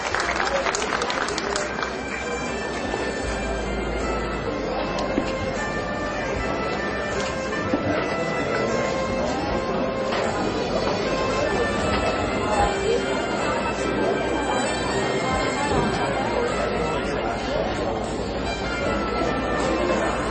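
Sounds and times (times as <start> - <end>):
crowd applauding steadily: 0.0 - 3.1
murmuring voices: 0.0 - 20.3.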